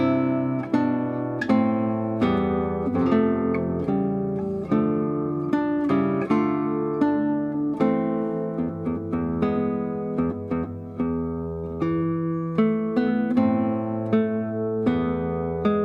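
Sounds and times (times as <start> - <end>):
guitar playing a patriotic song: 0.0 - 15.8.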